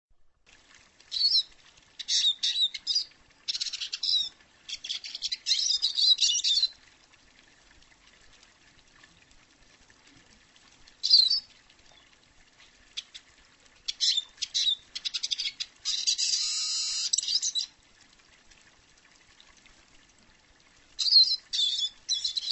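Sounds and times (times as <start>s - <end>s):
bird twittering chirps: 1.1s - 6.7s, 11.0s - 12.1s, 13.9s - 17.7s, 21.0s - 22.5s.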